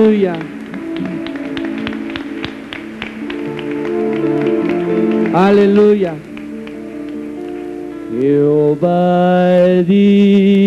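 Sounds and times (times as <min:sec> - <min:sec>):
speech: 0:00.0 - 0:01.2, 0:05.4 - 0:06.3, 0:08.1 - 0:10.6
audience clapping hands: 0:00.0 - 0:08.5.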